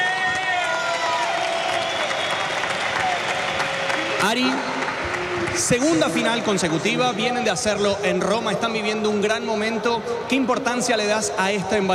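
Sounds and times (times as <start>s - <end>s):
audience applause for padel players at a Premier Padel final in Valencia: 0.0s - 6.7s
cheering voices: 0.0s - 6.9s
whistles: 1.5s - 3.4s
speech: 4.2s - 4.7s, 5.5s - 11.9s.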